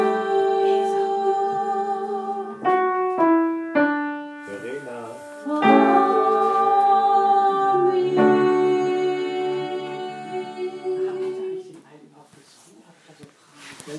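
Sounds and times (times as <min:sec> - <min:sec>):
soprano voice: 0:00.0 - 0:03.2, 0:05.2 - 0:11.9.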